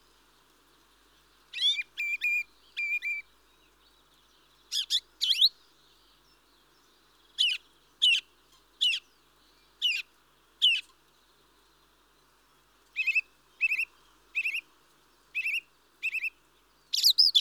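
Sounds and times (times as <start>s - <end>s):
mistle thrush calls: 1.5s - 3.3s, 4.7s - 6.2s, 7.3s - 8.3s, 12.9s - 14.7s, 15.3s - 17.4s.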